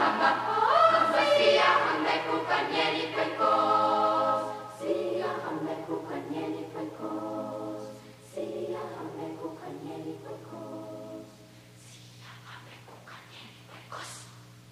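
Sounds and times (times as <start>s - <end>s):
children's choir singing: 0.0s - 11.3s.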